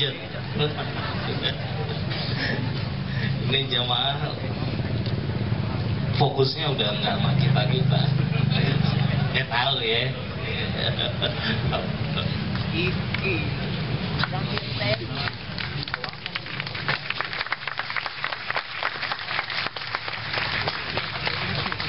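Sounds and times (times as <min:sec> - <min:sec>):
speech: 0:00.0 - 0:01.8, 0:03.2 - 0:04.6, 0:06.2 - 0:08.4, 0:09.3 - 0:15.0
low murmur of voices: 0:00.0 - 0:17.8, 0:18.6 - 0:21.8
laughter: 0:00.1 - 0:03.4, 0:07.8 - 0:09.3, 0:10.4 - 0:12.6
crowd clapping: 0:14.2 - 0:21.8.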